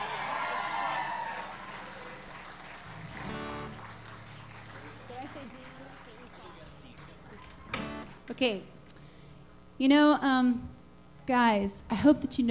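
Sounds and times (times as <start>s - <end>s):
audience applause: 0.0s - 8.0s
speech: 8.4s - 8.7s, 9.8s - 12.4s.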